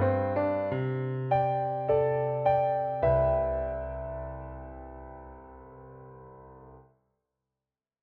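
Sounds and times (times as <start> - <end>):
musical accompaniment: 0.0 - 5.6.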